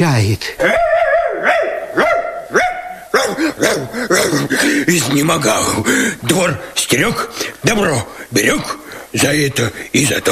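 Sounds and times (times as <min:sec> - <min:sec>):
speech: 0:00.0 - 0:01.6, 0:03.3 - 0:10.3
dog barking excitedly in sharp high yaps: 0:00.6 - 0:04.6.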